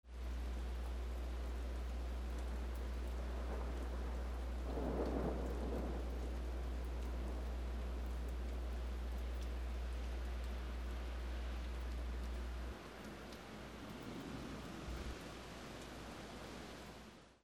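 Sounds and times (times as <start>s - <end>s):
rain: 0.0s - 17.4s.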